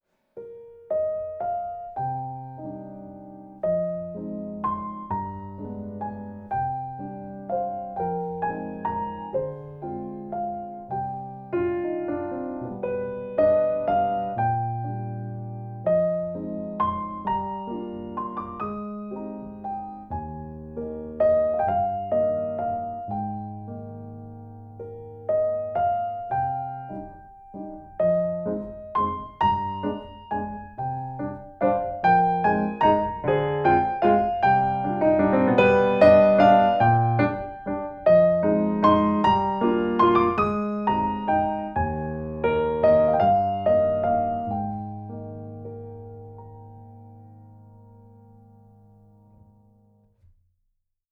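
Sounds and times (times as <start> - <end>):
waltz music: 0.8 - 47.6.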